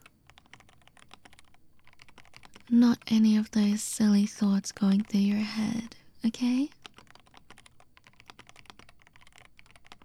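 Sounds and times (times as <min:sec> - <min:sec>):
typing on a computer keyboard: 0:00.0 - 0:10.0
speech: 0:02.7 - 0:06.8.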